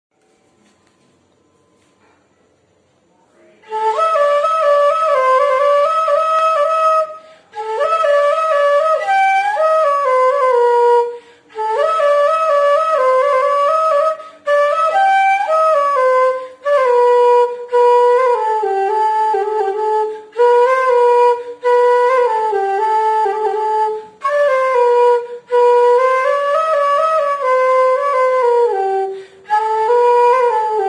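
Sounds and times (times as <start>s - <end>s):
flute cover as background music: 3.6s - 30.8s.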